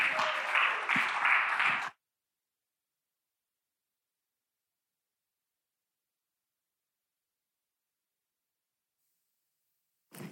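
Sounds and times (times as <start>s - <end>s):
church audience applause: 0.0s - 2.0s.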